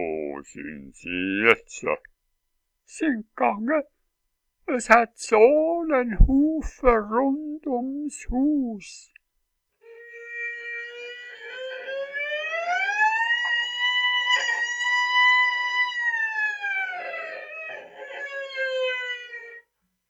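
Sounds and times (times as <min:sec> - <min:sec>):
speech: 0:00.0 - 0:02.1, 0:02.9 - 0:04.0, 0:04.7 - 0:09.1
noon work siren wailing: 0:09.9 - 0:19.7.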